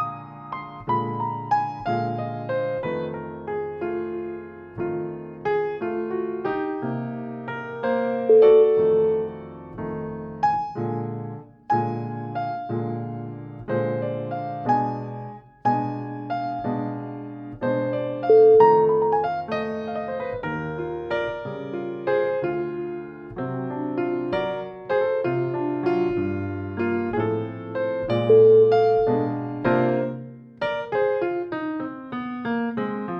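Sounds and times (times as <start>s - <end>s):
bluesy piano: 0.0s - 33.1s.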